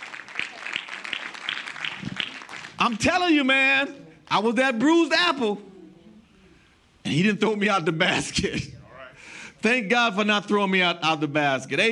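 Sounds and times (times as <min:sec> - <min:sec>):
crowd clapping: 0:00.0 - 0:03.4
speech: 0:02.8 - 0:05.7, 0:07.1 - 0:08.7, 0:09.6 - 0:11.8.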